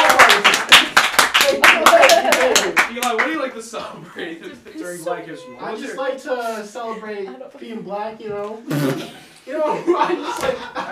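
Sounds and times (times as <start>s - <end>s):
small group clapping: 0.0s - 3.6s
speech: 3.6s - 10.9s
laughter: 8.9s - 10.9s.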